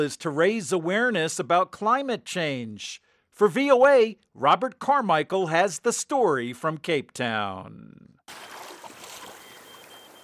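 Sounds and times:
speech: 0.0s - 8.5s
harbor water and air noise beside a 7-metre ocean rowing boat at Cape Town Harbor: 8.3s - 10.2s.

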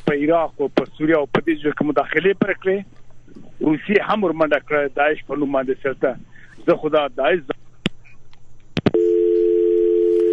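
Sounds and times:
speech: 0.1s - 7.5s
telephone tone after a call is cut off: 8.9s - 10.3s.

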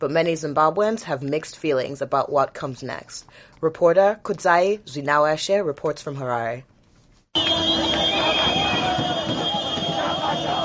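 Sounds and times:
speech: 0.0s - 6.7s, 7.4s - 8.0s
car horn blasts: 7.4s - 10.6s
crowd cheering and shouting: 7.4s - 10.6s
whistles: 7.4s - 10.6s.

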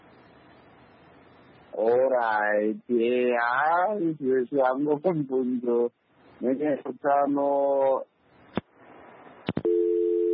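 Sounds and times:
speech: 1.8s - 8.1s
steady two-note telephone line tone after a dropped radio call: 9.6s - 10.3s.

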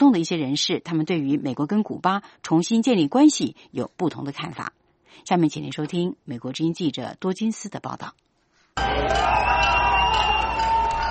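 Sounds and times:
speech: 0.0s - 8.2s, 8.8s - 9.8s
crowd cheering and chanting slogans: 8.8s - 11.1s.

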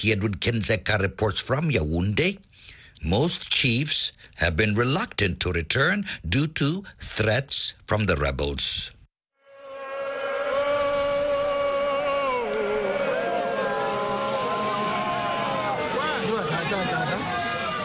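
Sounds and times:
speech: 0.0s - 9.0s
crowd shouting and cheering: 9.6s - 17.8s
crowd applauding: 11.8s - 17.8s.

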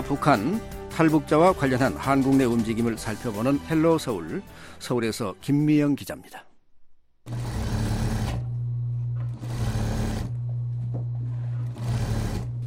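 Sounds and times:
speech: 0.1s - 6.5s, 7.2s - 7.5s
sewing machine running busily: 7.3s - 10.6s, 11.3s - 12.6s.

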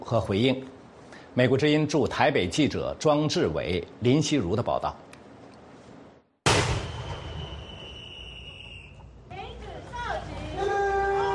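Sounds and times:
speech: 0.1s - 5.0s
21-gun salute cannon fire: 6.4s - 8.0s.

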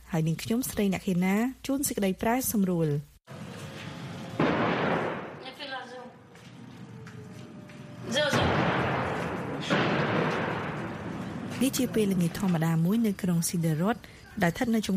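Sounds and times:
speech: 0.1s - 3.1s, 11.7s - 14.9s
Hamas rocket fire and explosions over Sderot, Israel: 4.1s - 5.6s, 8.1s - 12.4s.

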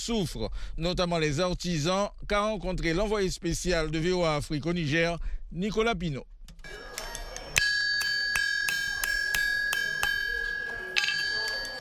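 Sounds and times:
speech: 0.0s - 7.0s
blacksmith hammering hot iron: 7.6s - 11.7s.

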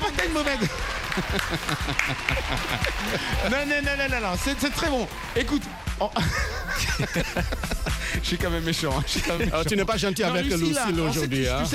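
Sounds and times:
laughter: 0.0s - 4.7s, 6.0s - 11.7s
audience applause: 0.0s - 9.0s
speech: 0.3s - 11.7s.

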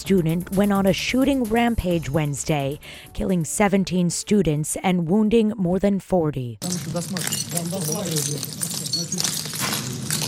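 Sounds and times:
speech: 0.0s - 9.4s
footsteps crunching on shattered glass: 6.6s - 10.2s.

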